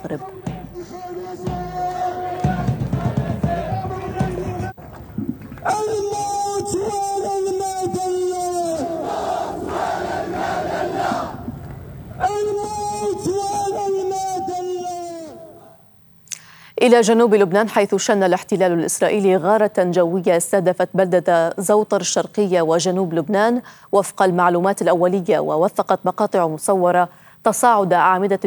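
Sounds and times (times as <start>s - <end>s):
speech: 0.0s - 2.1s, 16.8s - 28.4s
protest crowd chanting slogans: 0.0s - 4.8s, 5.6s - 13.8s.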